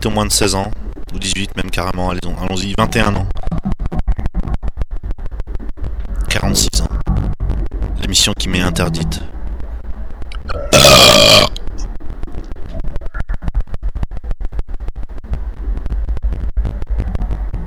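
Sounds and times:
speech: 0.0s - 3.4s, 6.4s - 6.9s, 8.1s - 9.3s
low rumbling noise: 0.0s - 17.6s
loud drawn-out raspy burp: 10.3s - 11.7s.

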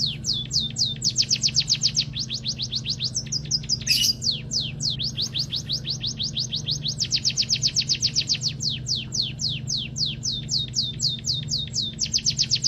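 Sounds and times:
munia song of thin high downward-sweeping chirps: 0.0s - 12.6s.

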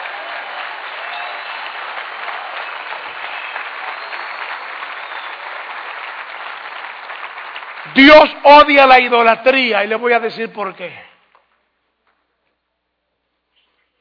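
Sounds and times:
audience applause during a sermon: 0.0s - 9.8s
speech: 7.9s - 11.1s.

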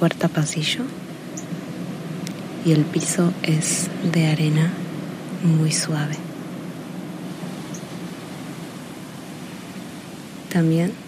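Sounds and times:
speech: 0.0s - 1.1s, 2.6s - 4.8s, 5.4s - 6.3s, 10.5s - 11.0s
sea waves: 0.0s - 11.0s.

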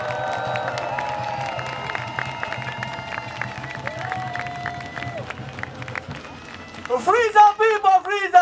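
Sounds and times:
protest crowd clapping at the Concertgebouw: 0.0s - 8.3s.

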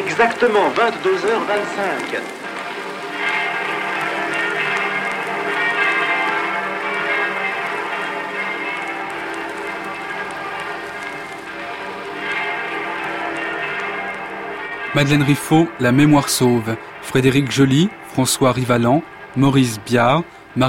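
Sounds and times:
church bells in Paris pealing for the Liberation: 0.0s - 20.6s
speech: 0.2s - 2.4s, 14.9s - 20.6s.

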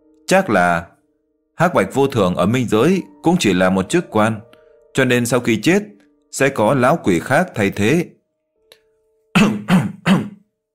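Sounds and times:
speech: 0.3s - 0.9s, 1.6s - 8.2s
dry coughing: 9.3s - 10.5s
throat clearing: 9.3s - 10.5s.

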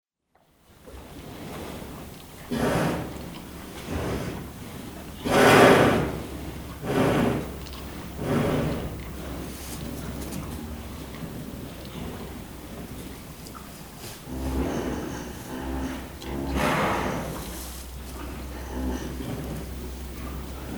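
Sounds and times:
sleeping cow breathing with low snoring snorts: 1.8s - 4.6s, 5.2s - 20.7s.

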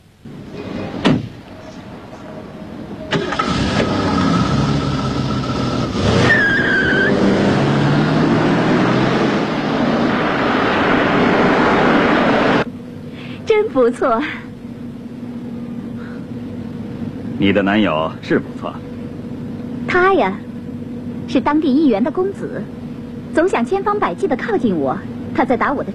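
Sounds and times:
car engine roaring as car pulls away: 0.0s - 25.9s
car door thumping shut: 1.0s - 1.4s
short high-pitched tyre squeal: 5.3s - 7.3s
speech: 13.8s - 14.5s, 17.4s - 18.9s, 19.9s - 20.4s, 21.3s - 25.9s.

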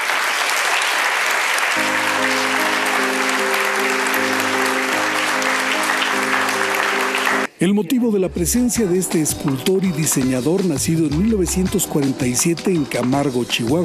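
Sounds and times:
crowd applauding in the rectory auditorium of Universidad Anáhuac: 0.0s - 7.6s
sustained low musical tones: 1.8s - 10.0s
speech: 7.6s - 13.8s.

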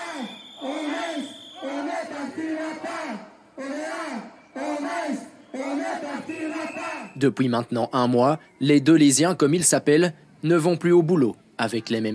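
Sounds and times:
crowd of protesters shouting a chant at a rally: 0.0s - 7.2s
speech: 1.9s - 12.1s.

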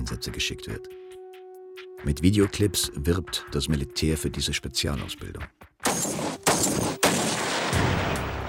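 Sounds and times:
speech: 0.1s - 1.0s, 2.0s - 5.7s
sniper rifle shots fired by German army snipers: 5.8s - 8.1s.

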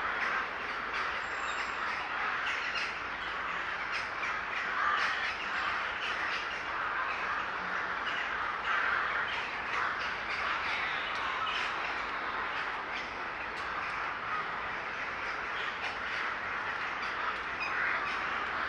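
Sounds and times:
large flock of birds calling in a city park in Łódź, Poland: 0.0s - 18.6s.

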